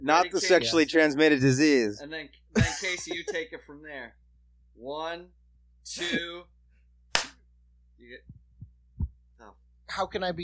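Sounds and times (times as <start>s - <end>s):
speech: 0.0s - 4.2s, 4.8s - 6.6s, 8.0s - 8.4s, 9.4s - 10.4s
hand clap for audio sync: 7.1s - 7.4s.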